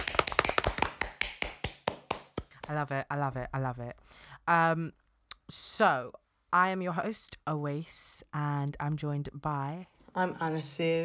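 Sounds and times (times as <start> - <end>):
small group clapping: 0.0 - 2.9
speech: 2.7 - 11.0.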